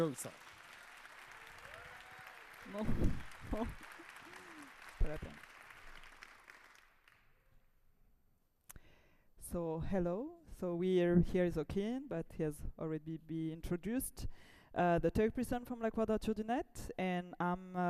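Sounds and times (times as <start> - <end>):
speech: 0.0 - 0.5, 2.6 - 3.9, 5.0 - 5.5, 9.5 - 17.8
audience applause: 0.0 - 7.2.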